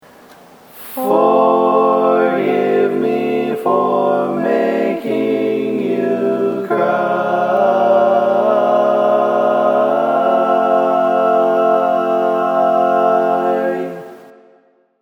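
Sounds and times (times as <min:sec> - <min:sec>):
barbershop tag sung by all parts: 0:01.0 - 0:14.3.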